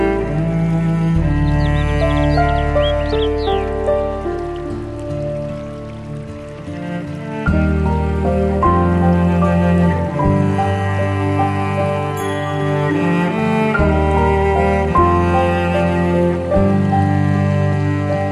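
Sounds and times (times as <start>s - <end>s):
Japanese music: 0.0s - 18.3s
stream flowing: 0.0s - 18.3s
birds: 1.1s - 7.1s.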